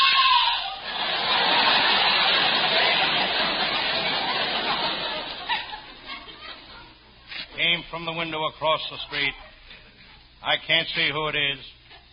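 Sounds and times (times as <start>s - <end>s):
woman screaming: 0.0s - 0.8s
laughter: 0.8s - 7.5s
speech: 7.9s - 9.5s, 10.4s - 11.8s.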